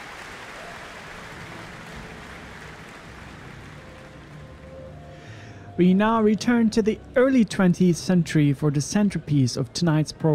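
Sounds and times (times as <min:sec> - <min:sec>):
warm applause for orchestra and pianist: 0:00.0 - 0:05.3
speech: 0:05.8 - 0:10.3.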